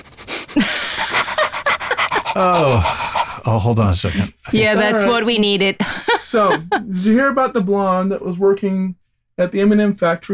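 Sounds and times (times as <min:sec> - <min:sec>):
dog panting: 0:00.0 - 0:04.7
laughter: 0:00.6 - 0:05.2, 0:05.8 - 0:07.2
speech: 0:02.4 - 0:10.3.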